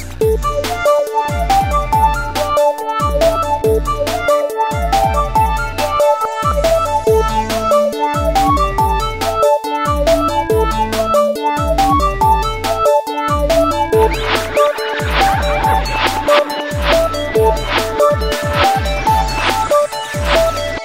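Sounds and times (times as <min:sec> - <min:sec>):
Samsung GT-C3110 phone ringtone: 0:00.2 - 0:20.7.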